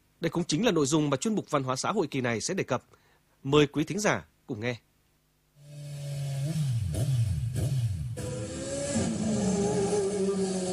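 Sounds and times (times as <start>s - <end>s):
speech: 0.2s - 4.9s
motorbikes revving with loud exhaust pops: 5.6s - 10.7s.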